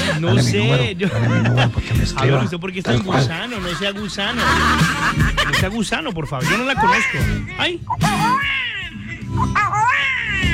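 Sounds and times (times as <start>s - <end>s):
laughter: 0.0s - 7.2s
speech: 0.2s - 10.3s
baby crying: 6.4s - 7.4s, 8.0s - 10.5s.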